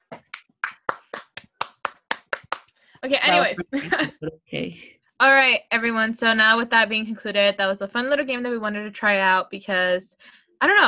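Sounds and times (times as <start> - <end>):
round of applause: 0.0 - 2.7
speech: 3.0 - 10.8
laughter: 3.3 - 4.6.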